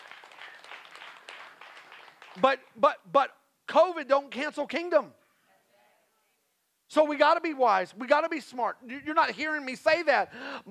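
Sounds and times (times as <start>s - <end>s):
crowd clapping: 0.0s - 2.8s
speech: 2.4s - 5.2s, 6.9s - 10.6s.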